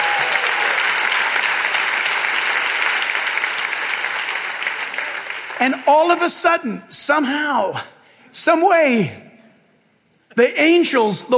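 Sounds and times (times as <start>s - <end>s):
audience cheering: 0.0s - 5.8s
speech: 5.6s - 9.2s, 10.4s - 11.3s.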